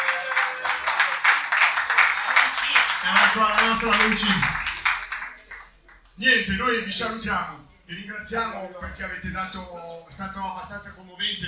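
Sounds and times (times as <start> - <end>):
audience applause: 0.0 - 6.1
speech: 3.0 - 4.6, 6.2 - 11.4.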